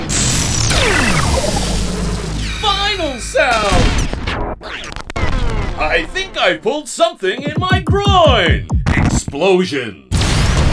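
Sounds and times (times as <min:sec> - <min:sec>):
power down sound effect: 0:00.0 - 0:05.8
speech: 0:05.9 - 0:10.1.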